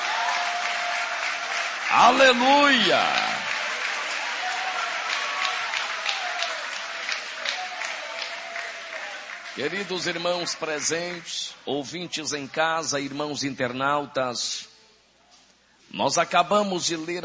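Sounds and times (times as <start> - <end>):
crowd audience applauding: 0.0 - 11.6
speech: 1.9 - 3.3, 9.6 - 14.7, 15.9 - 17.2.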